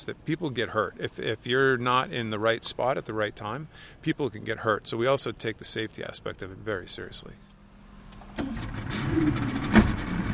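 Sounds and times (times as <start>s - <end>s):
speech: 0.0s - 7.5s, 8.4s - 9.7s
small motorboat engine running: 7.7s - 10.3s.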